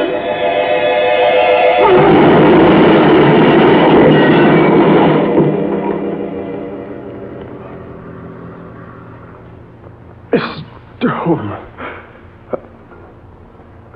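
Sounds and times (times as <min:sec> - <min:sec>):
engine droning: 0:00.0 - 0:13.9
car crashing into a truck: 0:01.0 - 0:08.0.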